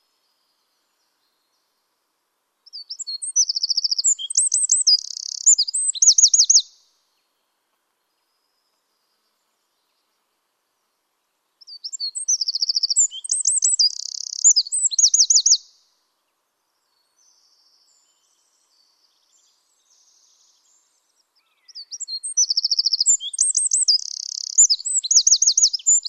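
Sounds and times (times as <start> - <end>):
Eurasian wren singing: 2.7 - 6.8, 11.6 - 15.7, 21.6 - 26.0.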